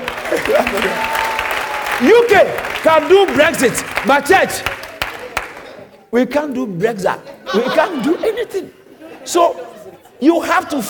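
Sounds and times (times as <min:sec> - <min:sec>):
audience applause: 0:00.0 - 0:05.8
laughter: 0:00.3 - 0:01.2, 0:07.2 - 0:10.5
speech: 0:02.0 - 0:04.8, 0:06.1 - 0:10.8.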